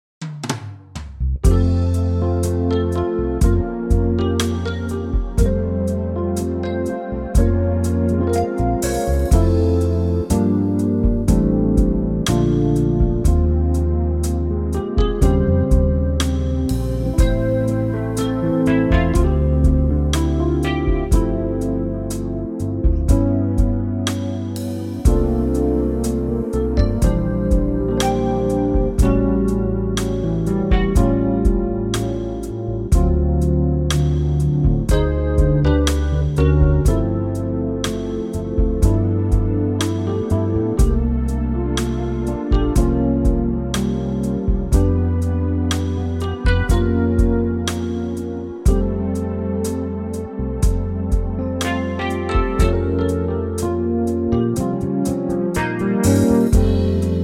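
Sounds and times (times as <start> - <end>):
smooth backing track in F for male vocals: 1.4 - 57.2.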